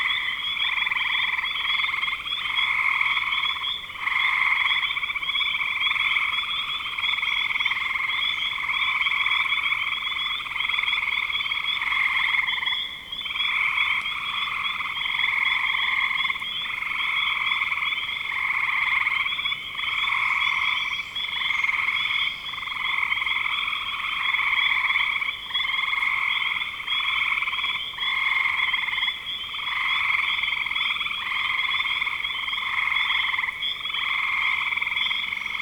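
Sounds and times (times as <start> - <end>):
chorus of frogs trilling: 0.0 - 35.6.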